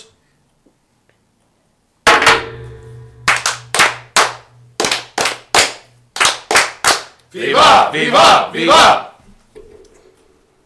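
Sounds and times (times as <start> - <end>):
Masonic brothers firing in unison at a table lodge toast: 2.1 - 7.1
speech: 7.3 - 9.1.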